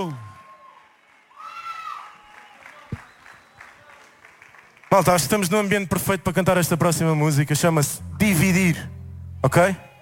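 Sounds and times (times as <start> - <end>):
speech: 0.0 - 0.3, 4.9 - 9.9
audience cheering: 0.0 - 4.2, 9.5 - 10.0
audience applause: 0.0 - 5.6.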